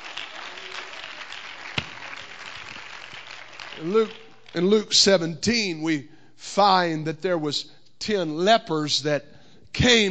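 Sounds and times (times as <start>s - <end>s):
audience clapping: 0.0s - 5.0s
speech: 3.8s - 10.1s.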